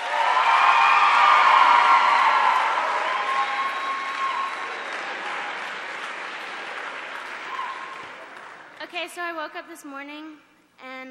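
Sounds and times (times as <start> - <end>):
audience applause and cheering: 0.0 - 8.8
speech: 9.0 - 11.0.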